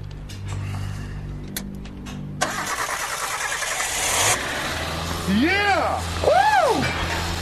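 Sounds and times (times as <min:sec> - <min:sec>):
engine cranking and firing up: 0:02.4 - 0:07.4
speech: 0:05.3 - 0:07.0.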